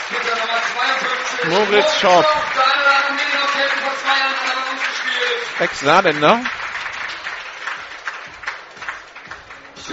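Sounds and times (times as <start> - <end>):
stadium crowd applause from Saarbrücken spectators: 0.0 - 9.9
speech: 1.3 - 6.6.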